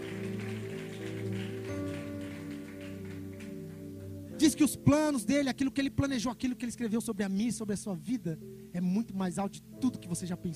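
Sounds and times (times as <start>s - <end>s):
crowd applause: 0.0s - 4.2s
sustained low musical chords: 0.0s - 10.5s
speech: 4.4s - 10.5s.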